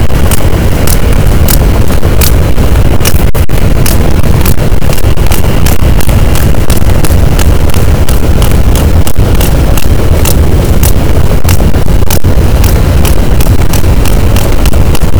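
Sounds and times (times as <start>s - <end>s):
Physeter macrocephalus sperm whale clicking: 0.0s - 15.1s.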